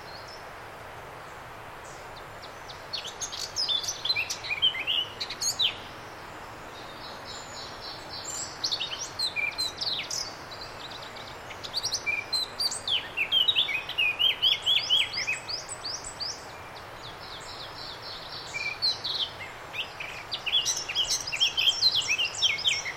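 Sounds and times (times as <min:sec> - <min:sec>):
Eurasian blackcap song: 0:01.8 - 0:06.0, 0:06.7 - 0:22.9.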